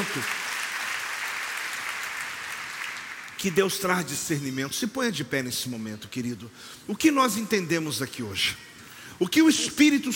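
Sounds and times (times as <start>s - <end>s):
speech: 0.0s - 0.4s, 3.4s - 10.1s
audience applause: 0.0s - 3.4s.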